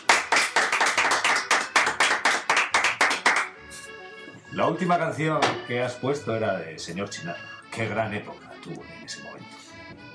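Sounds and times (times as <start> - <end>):
audience applause: 0.0 - 3.6
speech: 4.6 - 9.6.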